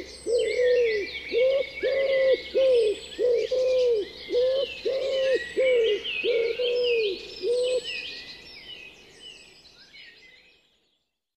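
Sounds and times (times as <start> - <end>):
wood pigeon cooing: 0.0 - 7.9.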